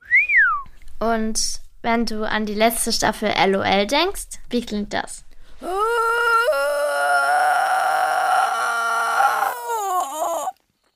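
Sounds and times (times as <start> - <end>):
speech: 1.0 - 6.1
strained vocal whine suppressing laughter: 5.6 - 10.6.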